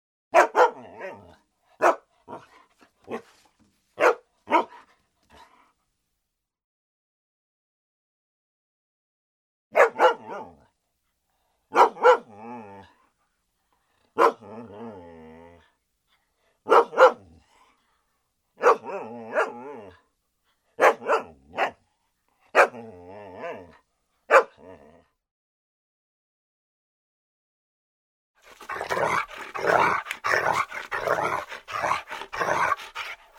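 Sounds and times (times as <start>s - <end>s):
German Shepherd barking: 0.3s - 3.4s, 4.0s - 5.6s, 9.7s - 10.7s, 11.7s - 12.4s, 14.1s - 14.6s, 16.6s - 17.4s, 18.6s - 20.0s, 20.8s - 21.8s, 22.5s - 23.7s, 24.3s - 24.7s, 28.4s - 33.3s
German Shepherd whining: 28.5s - 33.3s.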